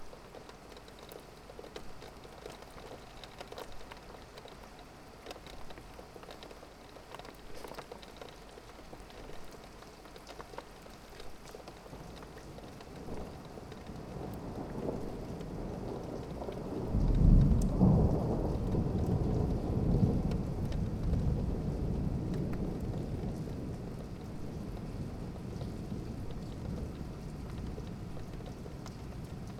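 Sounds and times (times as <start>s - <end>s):
rain heard out of a window: 0.0s - 29.5s
thunder: 14.2s - 29.5s.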